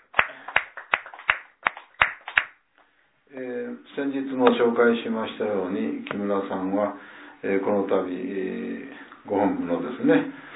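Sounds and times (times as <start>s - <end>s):
hand clapping celebrating a 64th birthday at a place of worship: 0.0s - 2.6s
speech: 3.3s - 10.4s.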